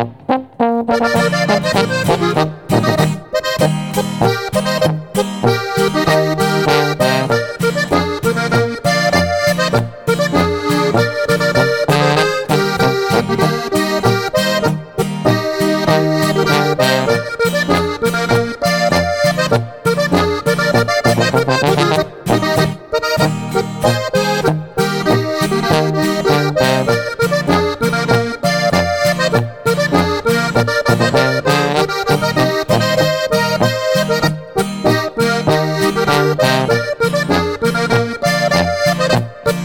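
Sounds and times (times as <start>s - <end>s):
Bavarian boarischer folk dance music: 0.1s - 39.6s.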